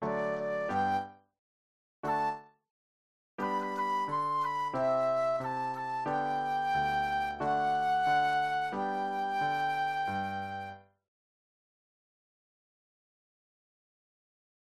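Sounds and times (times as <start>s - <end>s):
flute solo: 0.0s - 1.1s, 3.4s - 10.8s.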